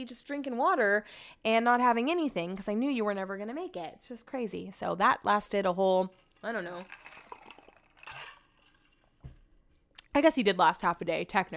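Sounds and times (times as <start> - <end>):
speech: 0.0 - 7.2, 10.1 - 11.5
crunching ice: 6.2 - 9.1.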